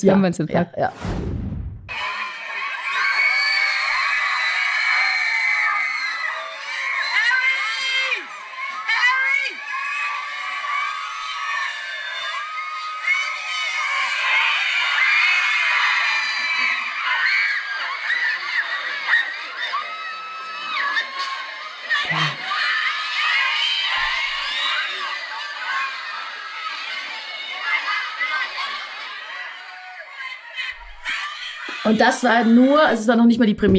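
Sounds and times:
speech: 0.0s - 1.4s, 31.9s - 33.7s
crowd of fans screaming: 1.9s - 32.9s.

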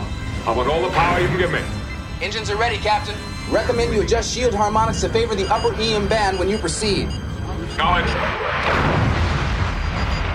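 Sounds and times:
speech: 0.5s - 9.0s
explosion of direct hit on starship: 8.3s - 10.3s.

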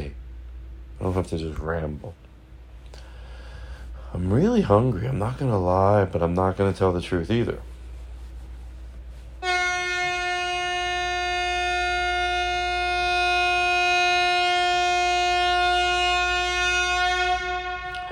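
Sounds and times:
speech: 1.0s - 2.2s, 4.2s - 7.7s
horn honk sound effect: 9.4s - 18.1s.

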